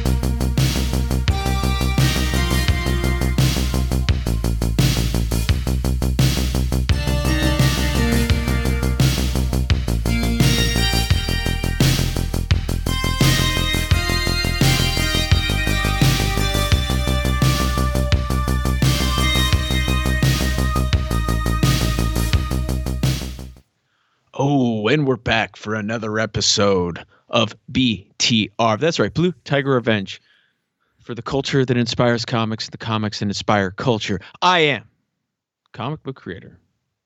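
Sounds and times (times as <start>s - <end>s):
intro music: 0.0s - 23.6s
speech: 25.4s - 30.3s, 31.0s - 34.9s, 35.7s - 36.6s.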